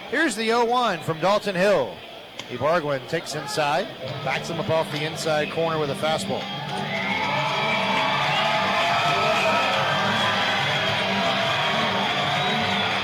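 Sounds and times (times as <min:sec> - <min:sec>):
baseball stadium crowd making noise: 0:00.0 - 0:13.0
speech: 0:00.1 - 0:06.9.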